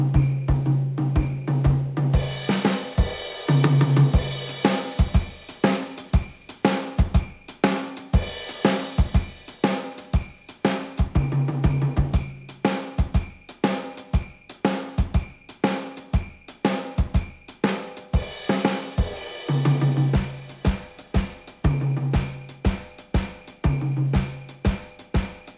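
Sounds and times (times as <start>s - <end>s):
orchestral percussion: 0.2s - 25.5s.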